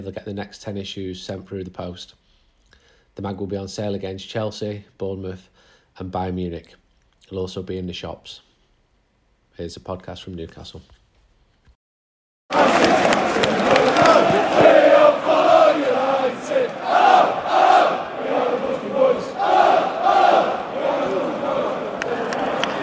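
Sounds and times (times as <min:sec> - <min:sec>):
speech: 0:00.0 - 0:02.2, 0:03.2 - 0:08.5, 0:09.6 - 0:11.0
football fans chanting in a stadium: 0:12.5 - 0:22.8.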